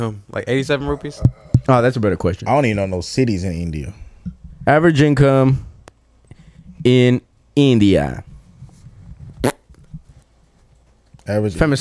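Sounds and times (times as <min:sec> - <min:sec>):
speech: 0:00.0 - 0:05.7, 0:06.8 - 0:08.3, 0:11.3 - 0:11.7
fart into the microphone: 0:09.4 - 0:09.7.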